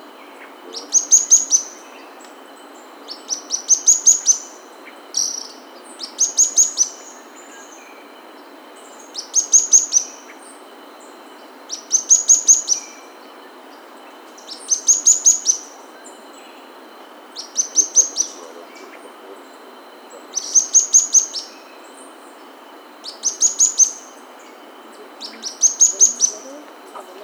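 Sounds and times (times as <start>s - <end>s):
bird chirping: 0.0s - 27.2s
hiss: 0.0s - 27.2s.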